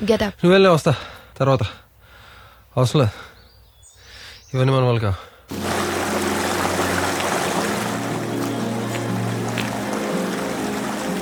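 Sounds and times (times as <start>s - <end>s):
speech: 0.0s - 1.8s, 2.8s - 3.3s, 4.5s - 5.7s
low humming drone: 5.5s - 11.2s
water rushing at Brigu waterfalls: 5.5s - 11.2s.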